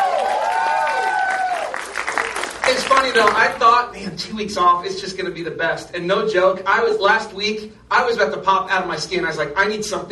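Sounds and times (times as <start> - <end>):
audience applause for a speaker: 0.0 - 3.6
speech: 2.7 - 10.1.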